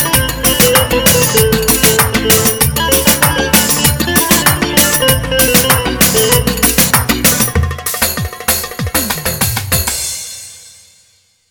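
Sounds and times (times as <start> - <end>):
Roland GW-8 keyboard music: 0.0 - 10.0.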